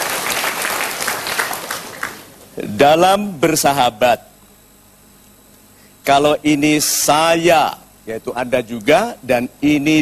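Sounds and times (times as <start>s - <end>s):
studio audience applause for a guest on a motivational talk show: 0.0s - 2.3s
speech: 2.6s - 4.3s, 6.1s - 10.0s.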